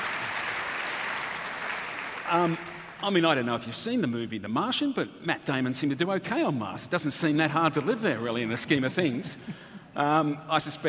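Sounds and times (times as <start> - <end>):
audience applause: 0.0 - 3.0
speech: 2.3 - 10.8.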